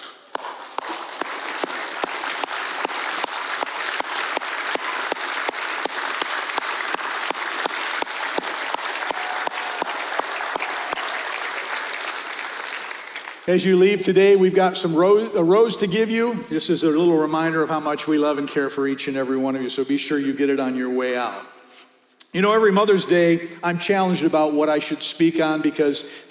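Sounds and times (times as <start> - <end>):
audience applause: 0.3 - 13.5
speech: 13.5 - 21.5, 22.3 - 26.3.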